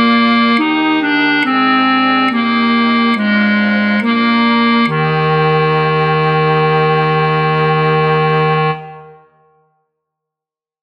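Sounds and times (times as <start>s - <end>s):
flute choir with bass flute for practice tracks: 0.0s - 9.7s.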